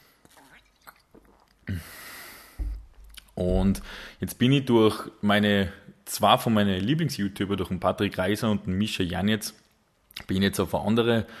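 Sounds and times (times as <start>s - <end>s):
person sipping a drink and gulping: 0.2s - 1.8s
speech: 1.7s - 2.0s, 3.4s - 9.6s, 10.2s - 11.3s.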